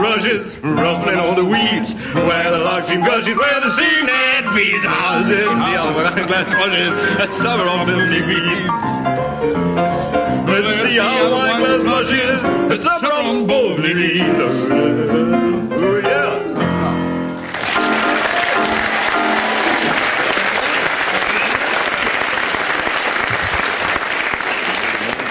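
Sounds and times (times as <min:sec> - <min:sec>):
speech: 0:00.1 - 0:17.1
audience applause: 0:17.4 - 0:25.2.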